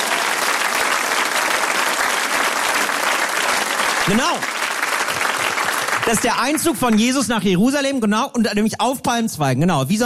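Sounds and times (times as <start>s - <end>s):
audience applause: 0.0s - 7.5s
speech: 4.1s - 4.5s, 6.1s - 10.0s.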